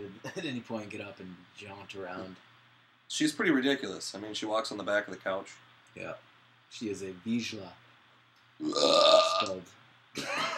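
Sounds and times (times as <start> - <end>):
speech: 0.2 - 2.5, 3.1 - 7.8, 8.6 - 10.5
burp: 8.6 - 9.6.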